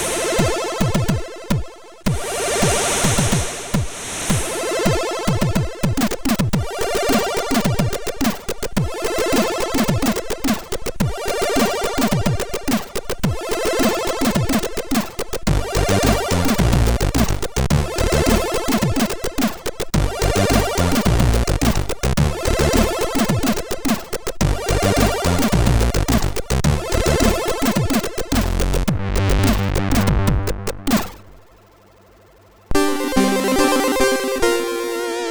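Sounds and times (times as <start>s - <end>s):
MOS6581R2 chiptune shuffle music: 0.2s - 3.6s, 4.4s - 31.5s, 32.7s - 35.2s.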